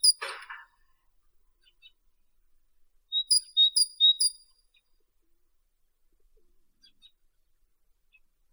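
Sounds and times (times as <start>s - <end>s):
great tit Parus major: 3.3s - 4.3s.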